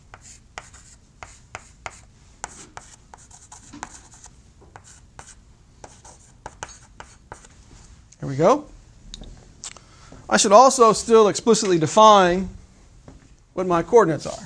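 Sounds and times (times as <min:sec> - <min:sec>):
pen scratching and tapping on a surface drawing a free body diagram by hand: 0:00.1 - 0:07.5
speech: 0:08.3 - 0:08.7, 0:10.3 - 0:12.6, 0:13.6 - 0:14.4.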